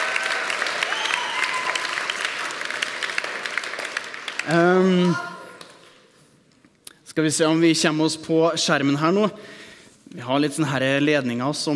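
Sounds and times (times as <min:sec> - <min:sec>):
audience applause: 0:00.0 - 0:05.8
person whooping: 0:00.8 - 0:02.0
speech: 0:04.5 - 0:05.3, 0:07.2 - 0:11.7.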